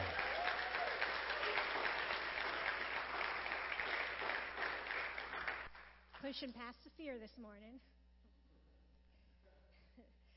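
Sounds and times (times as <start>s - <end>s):
church audience applauding to welcome a speaker: 0.0s - 6.3s
speech: 6.3s - 8.0s.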